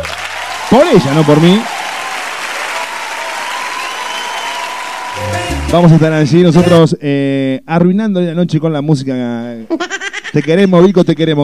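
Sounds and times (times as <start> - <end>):
audience applause at a live salsa and bachata event: 0.0 - 6.1
speech: 0.7 - 1.8, 5.7 - 11.4.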